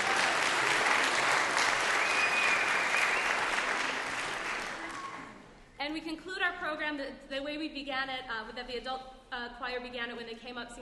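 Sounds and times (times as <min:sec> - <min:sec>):
audience applauding an adult choir and junior singers: 0:00.0 - 0:05.4
speech: 0:05.9 - 0:10.8.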